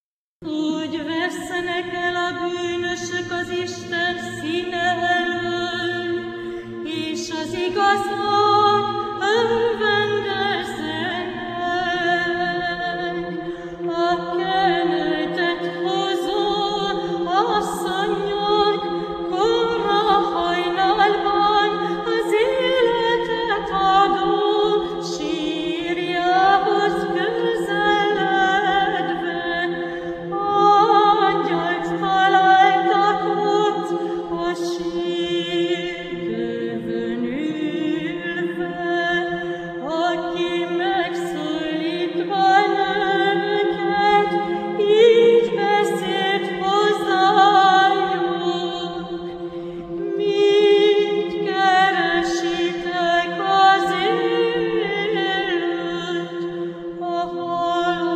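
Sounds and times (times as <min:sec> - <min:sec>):
hymns chanted in Hungarian: 0:00.4 - 0:58.1.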